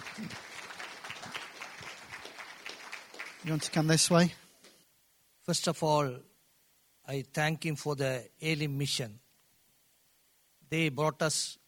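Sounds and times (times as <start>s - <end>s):
audience applause: 0.0s - 4.2s
speech: 3.4s - 4.4s, 5.5s - 6.3s, 7.1s - 9.2s, 10.7s - 11.6s.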